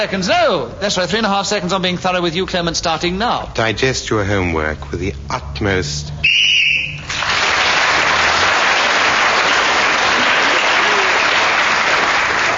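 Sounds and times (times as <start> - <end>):
speech: 0.0 - 7.4
whistle ending the round: 6.2 - 7.1
audience applause: 7.0 - 12.5.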